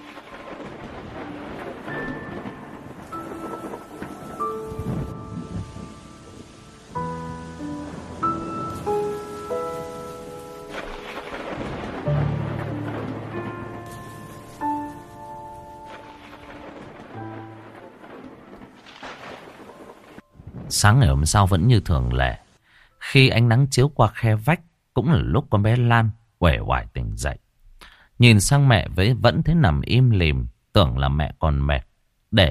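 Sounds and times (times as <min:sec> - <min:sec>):
thunder: 0:00.0 - 0:21.8
heavy rain in a thunderstorm: 0:00.0 - 0:22.6
speech: 0:20.8 - 0:22.4, 0:23.1 - 0:27.4, 0:28.2 - 0:32.4.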